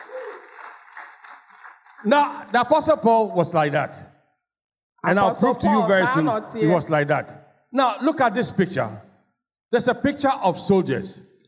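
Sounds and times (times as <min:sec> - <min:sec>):
audience clapping: 0:00.0 - 0:03.7
speech: 0:02.0 - 0:04.1, 0:05.0 - 0:09.1, 0:09.7 - 0:11.3.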